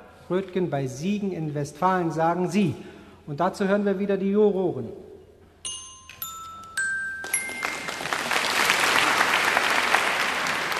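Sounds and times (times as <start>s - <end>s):
speech: 0.3s - 5.0s
bright ringing chime tones: 5.6s - 8.3s
audience applause after a correct answer: 7.2s - 10.7s.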